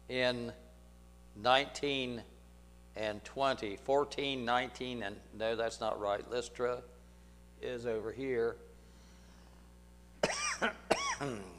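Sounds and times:
speech: 0.1s - 0.6s, 1.4s - 2.3s, 3.0s - 6.9s, 7.6s - 8.7s, 10.6s - 11.5s
speaker's hacking coughs: 10.2s - 11.5s
throat clearing: 10.2s - 11.5s.

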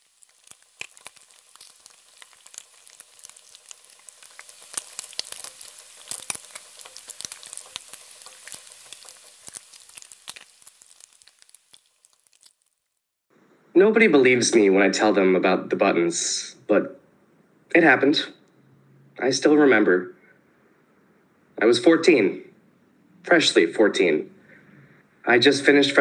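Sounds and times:
bacon frying in a pan: 0.0s - 13.2s
speech: 13.8s - 16.9s, 17.8s - 18.4s, 19.2s - 20.2s, 21.6s - 22.5s, 23.2s - 24.4s, 25.2s - 25.9s.

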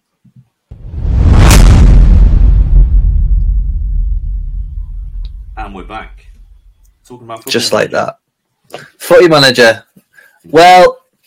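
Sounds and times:
whoosh transition sound effect: 0.7s - 6.9s
speech: 5.7s - 6.3s, 7.1s - 11.0s.

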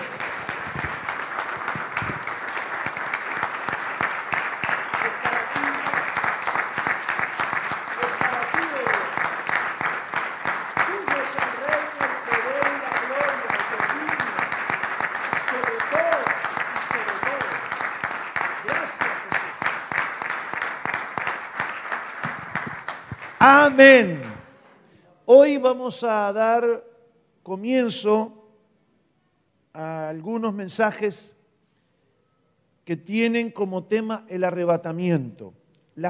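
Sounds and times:
audience applauding loudly: 0.0s - 24.4s
speech: 23.7s - 24.2s, 25.3s - 26.9s, 27.5s - 28.4s, 30.6s - 31.4s, 32.9s - 36.0s.

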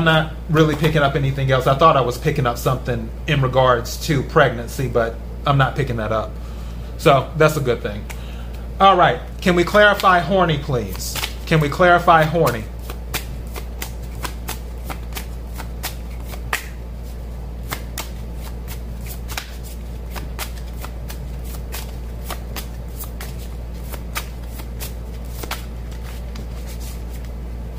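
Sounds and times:
speech: 0.0s - 8.2s, 8.8s - 12.7s
tarot cards being shuffled: 9.7s - 27.7s.

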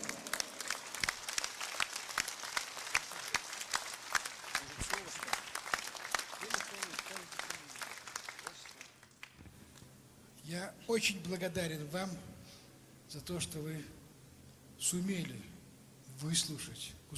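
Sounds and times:
audience applause: 0.0s - 9.4s
speech: 10.9s - 12.3s, 13.1s - 14.0s, 14.8s - 15.5s, 16.2s - 17.1s.

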